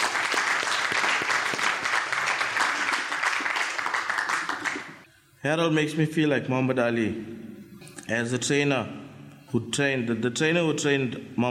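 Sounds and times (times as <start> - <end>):
audience applause: 0.0 - 5.0
speech: 5.4 - 7.4, 8.1 - 11.4.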